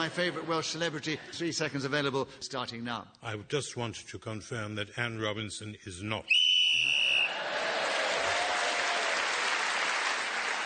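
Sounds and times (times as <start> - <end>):
speech: 0.0 - 6.5
whistle blown to end the round: 6.3 - 7.4
applause: 7.2 - 10.6.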